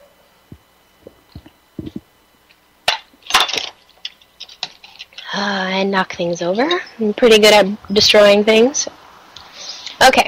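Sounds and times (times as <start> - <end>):
person drinking water: 1.0 - 2.1
speech: 5.4 - 9.0, 10.1 - 10.2.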